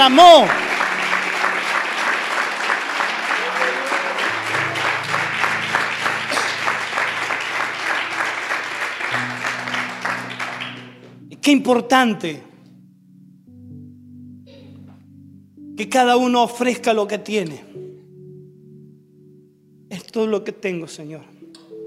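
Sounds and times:
speech: 0:00.0 - 0:00.7, 0:11.4 - 0:12.5, 0:15.8 - 0:17.8, 0:20.2 - 0:21.4
audience applauding: 0:00.0 - 0:11.2.

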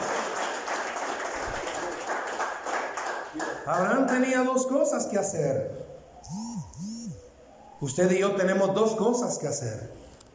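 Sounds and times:
audience applause: 0:00.0 - 0:04.1
speech: 0:03.7 - 0:06.4, 0:07.8 - 0:10.1.

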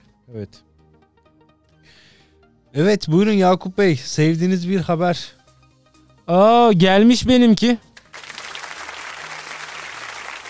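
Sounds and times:
speech: 0:00.3 - 0:00.7, 0:02.7 - 0:05.4, 0:06.3 - 0:07.9
crowd clapping: 0:08.0 - 0:10.4.

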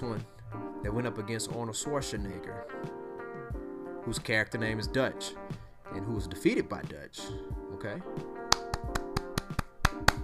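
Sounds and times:
speech: 0:00.0 - 0:03.0, 0:04.0 - 0:08.3
hands clapping: 0:08.3 - 0:10.2.

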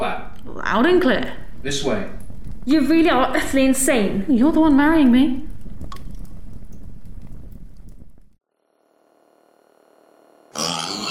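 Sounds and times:
steady buzzing hum: 0:00.5 - 0:11.0
speech: 0:00.7 - 0:05.5
pig-like grunting and oinking from a device: 0:10.6 - 0:11.0.

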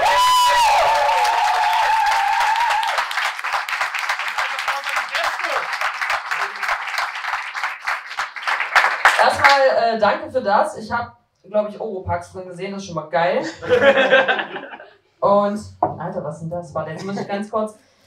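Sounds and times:
high vocal cheer: 0:00.0 - 0:03.2
audience applause: 0:00.0 - 0:09.6
speech: 0:09.5 - 0:17.8
laughter: 0:13.4 - 0:14.9, 0:16.9 - 0:17.4.

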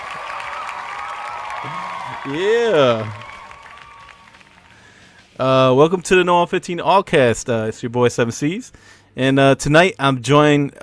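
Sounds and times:
crowd applause sound effect: 0:00.0 - 0:05.1
speech: 0:01.6 - 0:03.3, 0:05.4 - 0:10.8.

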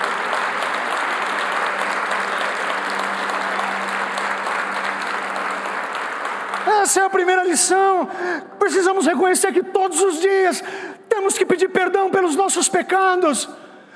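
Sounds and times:
audience applause: 0:00.0 - 0:07.8
speech: 0:06.9 - 0:13.9.

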